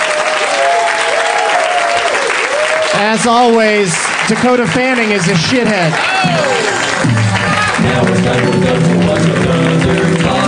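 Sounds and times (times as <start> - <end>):
whoops and cheers: 0.0 - 3.0, 5.9 - 7.8
audience applause: 0.0 - 10.4
speech: 3.0 - 10.0.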